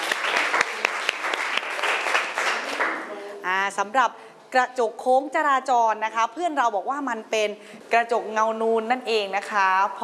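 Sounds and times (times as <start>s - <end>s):
applause: 0.0s - 3.2s
speech: 3.7s - 10.0s.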